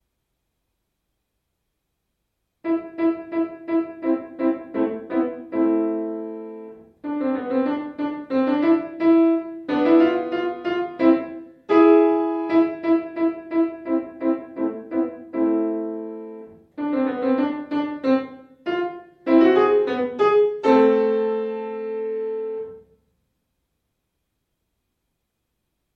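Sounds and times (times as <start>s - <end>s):
piano piece: 2.6s - 23.0s.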